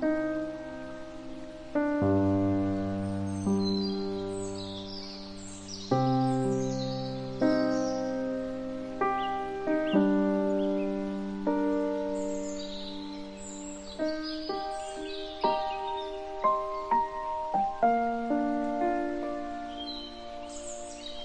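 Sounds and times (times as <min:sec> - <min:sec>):
forest ambience: 0:00.0 - 0:21.2
piano: 0:00.0 - 0:21.2.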